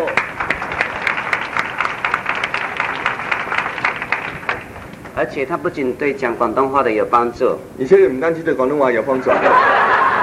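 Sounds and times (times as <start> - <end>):
audience applause: 0.0 - 5.2
speech: 5.2 - 9.7
laughter: 9.1 - 10.2.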